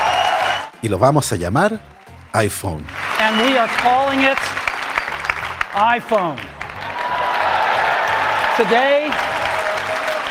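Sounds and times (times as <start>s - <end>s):
speech: 0.8s - 4.6s, 5.8s - 6.6s, 8.6s - 9.3s
audience applause: 2.8s - 10.3s.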